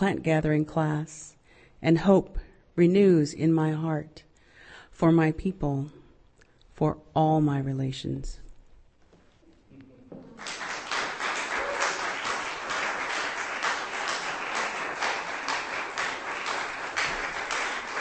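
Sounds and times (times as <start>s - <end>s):
speech: 0.0s - 4.3s, 5.0s - 6.0s, 6.8s - 8.4s
audience applause after a reading: 10.4s - 18.0s.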